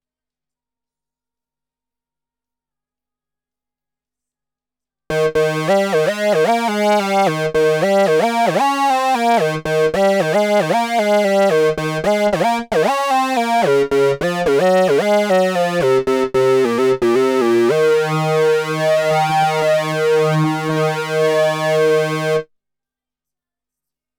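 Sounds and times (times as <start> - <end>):
Moog synthesizer: 5.1 - 22.4.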